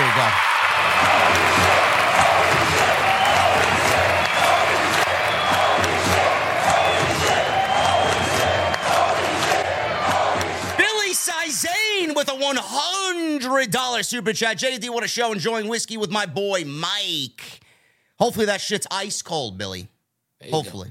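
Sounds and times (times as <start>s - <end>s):
crowd cheering and shouting: 0.0s - 13.5s
speech: 0.2s - 1.6s, 12.2s - 17.6s, 18.2s - 20.8s.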